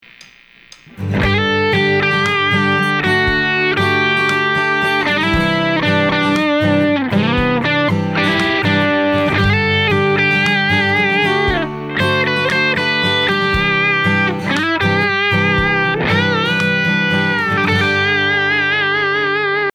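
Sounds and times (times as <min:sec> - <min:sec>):
electric guitar solo: 0:00.9 - 0:19.7.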